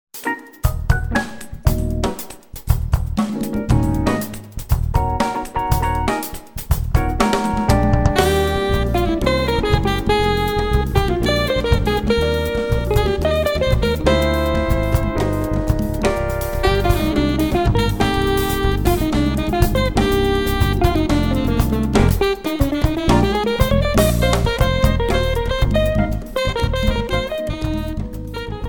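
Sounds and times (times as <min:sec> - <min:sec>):
samba music: 0:00.2 - 0:28.6.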